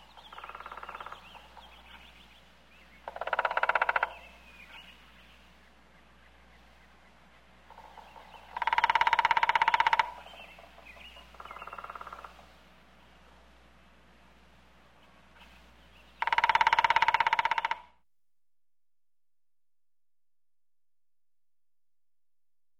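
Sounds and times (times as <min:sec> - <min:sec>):
woodpecker drumming: 0:00.2 - 0:02.2, 0:03.0 - 0:04.8, 0:07.4 - 0:12.4, 0:16.0 - 0:18.0.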